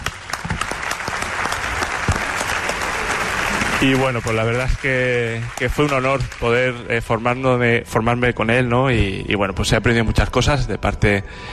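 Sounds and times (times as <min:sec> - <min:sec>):
audience applause: 0:00.0 - 0:07.1
speech: 0:03.8 - 0:11.5.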